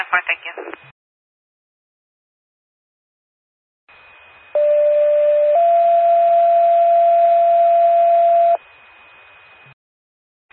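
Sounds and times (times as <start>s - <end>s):
two-tone 911 emergency paging system alert: 4.6s - 8.6s.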